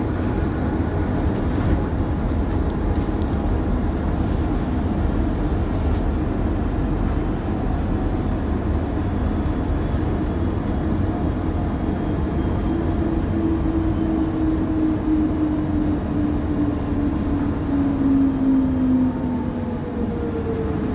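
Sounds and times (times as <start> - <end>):
moving bus engine and road noise: 0.0 - 20.9.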